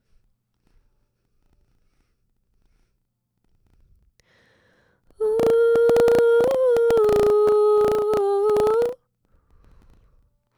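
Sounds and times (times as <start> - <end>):
vocal harmony: 5.2 - 9.0.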